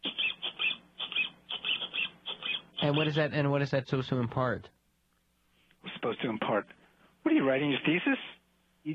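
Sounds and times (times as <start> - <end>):
rubber duck squeaking: 0.0 - 3.1
speech: 2.8 - 4.8, 6.0 - 8.9.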